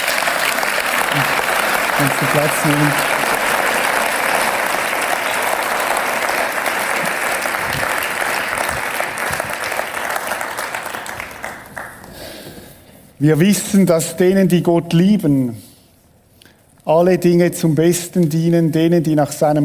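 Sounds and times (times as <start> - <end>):
audience applause: 0.0 - 12.2
speech: 2.0 - 3.1, 13.2 - 15.6, 16.9 - 19.6.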